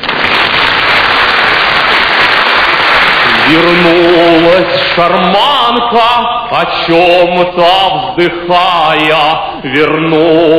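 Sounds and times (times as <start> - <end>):
crowd applauding: 0.0 - 5.4
speech: 3.5 - 10.5.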